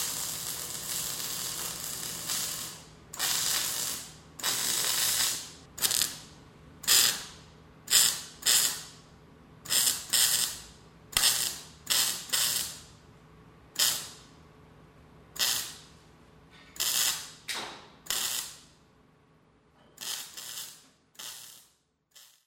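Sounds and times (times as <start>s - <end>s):
welding machine: 0.0s - 9.0s, 9.7s - 12.9s, 13.8s - 14.2s, 15.4s - 15.9s, 16.6s - 18.7s, 19.9s - 22.4s.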